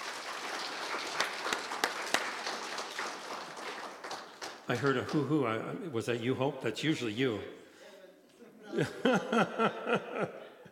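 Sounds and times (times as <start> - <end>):
audience clapping: 0.0 - 5.5
speech: 4.7 - 7.6, 8.8 - 10.4
laughter: 8.6 - 10.7.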